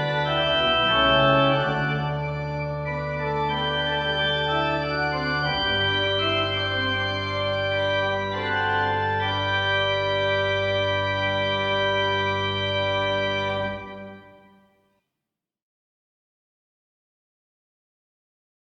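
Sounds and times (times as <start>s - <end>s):
fugue in G major: 0.0s - 14.6s.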